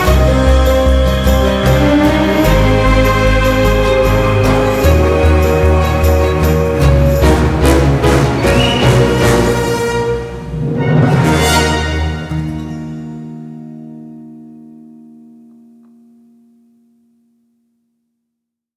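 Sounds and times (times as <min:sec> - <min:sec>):
strong adventure music: 0:00.0 - 0:13.2.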